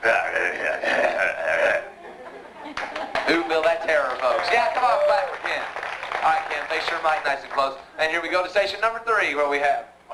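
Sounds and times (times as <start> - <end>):
voice imitating an evil sinister growl: 0.6 - 2.0
laughter: 0.6 - 4.6
speech: 4.0 - 9.9.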